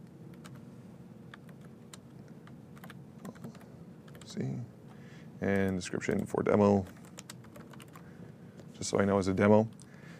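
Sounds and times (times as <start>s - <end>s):
typing on a computer keyboard: 1.3s - 4.3s, 5.5s - 8.0s
speech: 4.3s - 4.8s, 5.4s - 7.0s, 8.8s - 10.1s.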